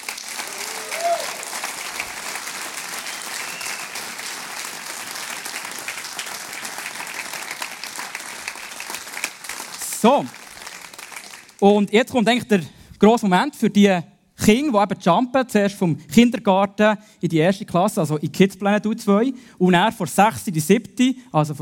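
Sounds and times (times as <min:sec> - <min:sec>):
warm applause from audience: 0:00.0 - 0:11.6
speech: 0:10.0 - 0:10.4, 0:11.6 - 0:21.6.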